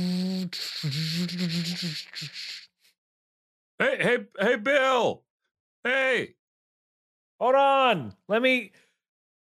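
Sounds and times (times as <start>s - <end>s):
voice imitating a lawnmower: 0.2s - 2.6s
speech: 0.8s - 2.5s, 3.8s - 5.3s, 5.9s - 6.4s, 7.4s - 8.8s.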